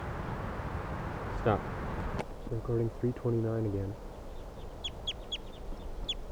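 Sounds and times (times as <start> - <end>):
low rumble: 0.0 - 4.0
captive birds calling: 0.0 - 6.2
speech: 1.4 - 1.8, 2.5 - 4.0.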